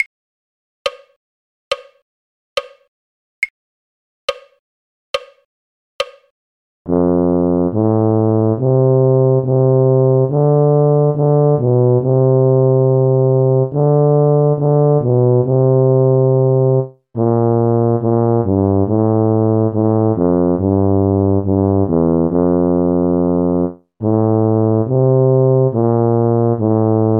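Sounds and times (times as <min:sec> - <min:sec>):
tuba: 0:06.9 - 0:27.1.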